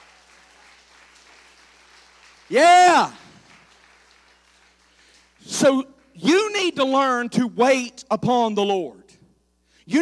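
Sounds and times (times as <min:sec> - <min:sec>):
audience clapping: 0:00.0 - 0:06.2
speech: 0:02.5 - 0:03.2, 0:05.6 - 0:09.0.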